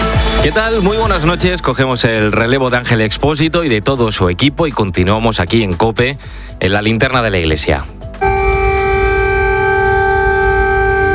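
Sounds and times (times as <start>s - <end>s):
speech: 0.4s - 8.4s
air raid siren wailing: 8.2s - 11.1s.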